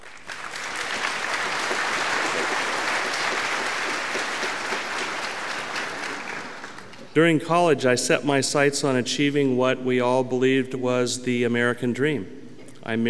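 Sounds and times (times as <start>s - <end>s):
audience applause welcoming a guest speaker: 0.0s - 7.2s
speech: 7.2s - 13.0s.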